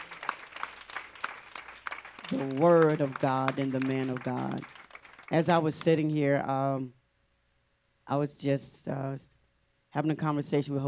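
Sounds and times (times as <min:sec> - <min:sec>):
audience hand clap of praise: 0:00.0 - 0:06.1
speech: 0:02.3 - 0:07.0, 0:08.1 - 0:09.4, 0:10.0 - 0:10.8.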